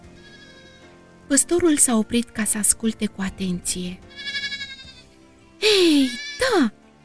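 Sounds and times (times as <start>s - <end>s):
lamb bleating: 0.0s - 0.9s, 4.0s - 6.7s
speech: 1.3s - 4.3s.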